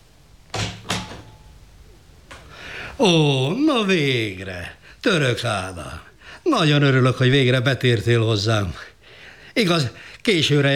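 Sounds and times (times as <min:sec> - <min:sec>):
door opening as someone enters: 0:00.5 - 0:01.6
speech: 0:03.0 - 0:08.9, 0:09.6 - 0:10.7.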